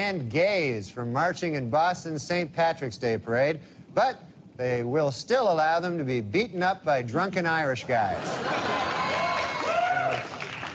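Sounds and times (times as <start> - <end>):
speech: 0.0 - 9.2
audience applause: 8.5 - 10.7.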